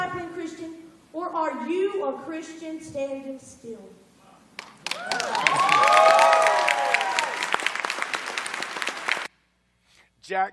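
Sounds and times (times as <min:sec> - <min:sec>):
speech: 0:01.4 - 0:04.0, 0:10.3 - 0:10.5
audience clapping: 0:04.6 - 0:09.3.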